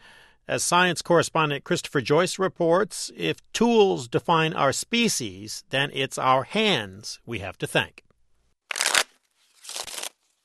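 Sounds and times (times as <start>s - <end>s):
speech: 0.5s - 8.0s
fingers shuffling playing cards at a card table: 8.7s - 10.3s.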